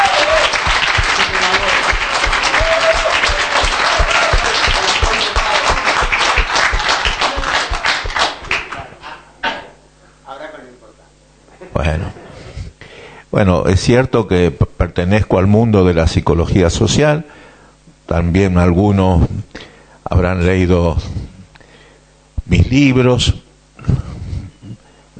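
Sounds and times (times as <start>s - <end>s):
audience applause: 0.0s - 9.0s
speech: 13.4s - 17.4s, 18.1s - 21.3s, 22.5s - 24.1s.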